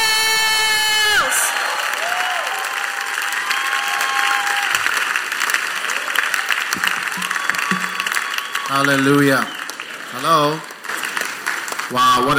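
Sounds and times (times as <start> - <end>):
brief cheers: 0.0 - 4.9, 5.8 - 10.4
church audience applauding to welcome a bishop: 1.0 - 12.3
speech: 8.7 - 9.6, 10.2 - 10.7, 11.9 - 12.3.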